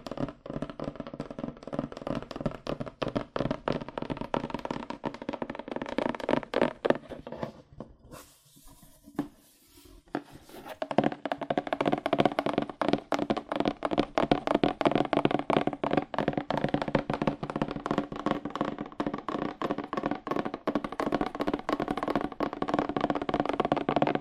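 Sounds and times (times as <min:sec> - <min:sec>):
fast aggressive tapping on cardboard: 0:00.0 - 0:07.3, 0:10.0 - 0:24.2.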